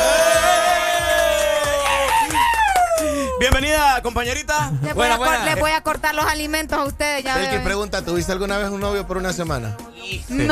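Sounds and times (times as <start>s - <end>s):
applause and cheering: 0.0s - 3.6s
speech: 3.4s - 10.5s.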